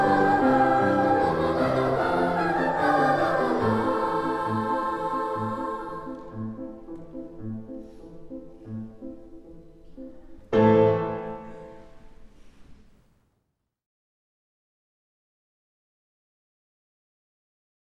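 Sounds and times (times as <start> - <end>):
three-part treble dance music: 0.0 - 12.0.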